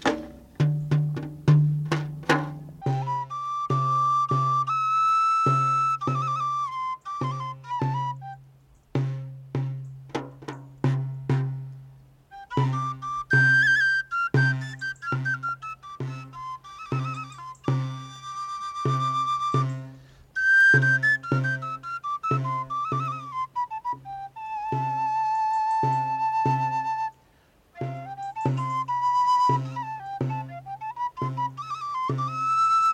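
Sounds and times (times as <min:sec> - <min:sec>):
large galoubet pipe and small tabor playing: 0:00.0 - 0:32.9.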